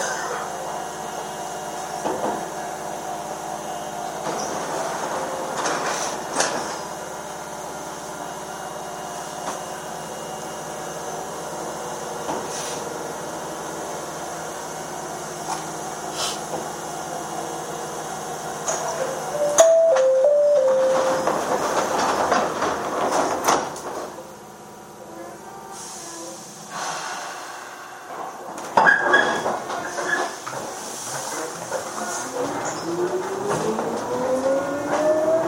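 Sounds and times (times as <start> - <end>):
Chichibu Railway 7500 series train rumble and hum between Hanyu and Kumagaya: 0.0 - 35.4
short chime: 19.4 - 21.2
rising train motor whine: 32.7 - 35.4.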